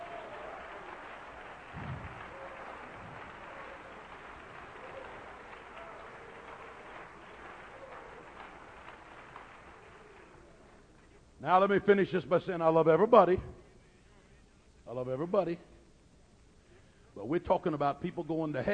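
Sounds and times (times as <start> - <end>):
audience clapping hands: 0.0 - 11.2
speech: 11.4 - 13.5, 15.3 - 15.7, 17.3 - 18.7.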